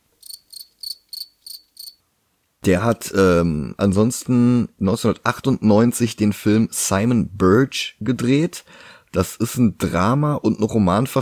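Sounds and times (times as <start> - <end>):
crickets chirping sound effect: 0.2 - 2.0
speech: 2.6 - 11.2.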